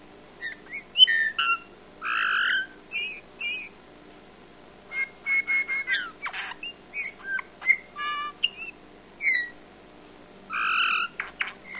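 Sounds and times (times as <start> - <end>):
Eurasian bullfinch Pyrrhula pyrrhula call notes, soft piping whistles: 0.4 - 1.6, 2.2 - 3.7, 4.9 - 9.6, 10.6 - 11.7.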